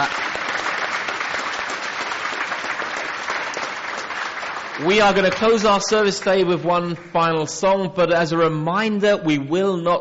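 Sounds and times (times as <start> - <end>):
audience applause: 0.0 - 6.6
speech: 4.8 - 9.9.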